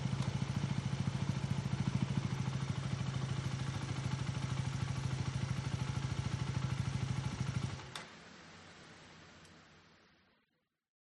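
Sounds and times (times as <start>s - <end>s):
motorcycle engine accelerating fast with a howl: 0.0s - 7.9s.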